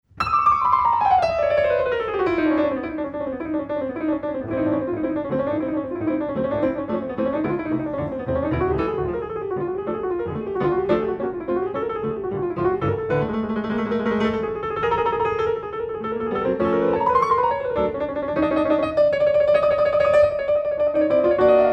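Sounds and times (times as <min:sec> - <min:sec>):
classical music recording: 0:00.0 - 0:21.7.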